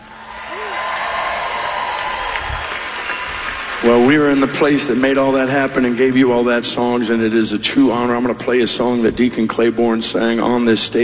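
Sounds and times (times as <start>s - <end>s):
rising whoop: 0.0s - 3.7s
crowd cheering and clapping: 0.0s - 6.8s
speech: 3.8s - 11.0s.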